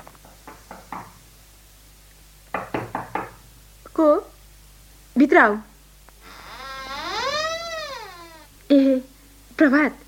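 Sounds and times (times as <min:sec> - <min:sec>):
knocking on a room door: 0:00.3 - 0:01.2, 0:02.5 - 0:03.4
speech: 0:04.0 - 0:04.3, 0:05.2 - 0:05.7, 0:09.6 - 0:10.0.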